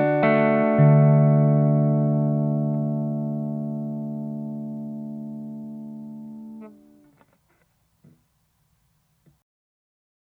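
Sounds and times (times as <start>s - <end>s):
clean guitar tone with all three pickups: 0.0s - 7.2s.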